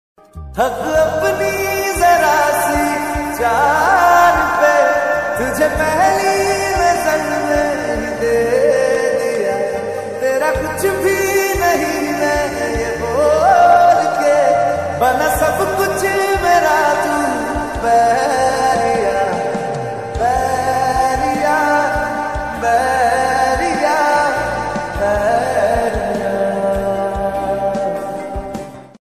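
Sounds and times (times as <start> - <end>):
lofi song ringtone: 0.3 - 29.0.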